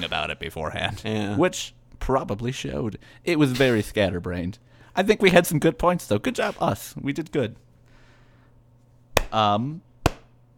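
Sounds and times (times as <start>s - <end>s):
speech: 0.0s - 7.6s, 9.3s - 9.9s
sharp loud slow hand claps: 10.1s - 10.4s.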